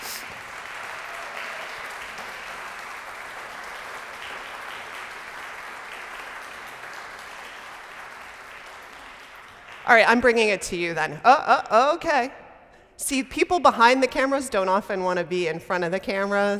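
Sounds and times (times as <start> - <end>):
audience applause: 0.0 - 9.9
speech: 9.9 - 12.4, 13.0 - 16.5.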